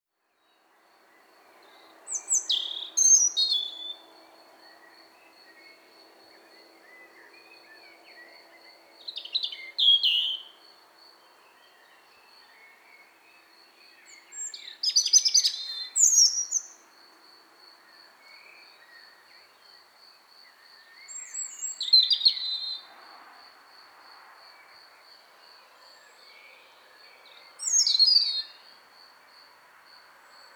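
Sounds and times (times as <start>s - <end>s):
European robin singing: 1.6s - 5.9s, 6.5s - 16.9s, 20.5s - 22.9s, 26.2s - 28.7s.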